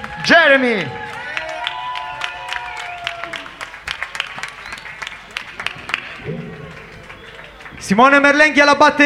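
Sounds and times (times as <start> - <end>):
cheering voices: 0.0 - 9.0
live concert audience applauding: 0.0 - 9.0
speech: 0.3 - 1.0, 7.9 - 9.0
whistles: 4.2 - 6.4, 7.0 - 7.8.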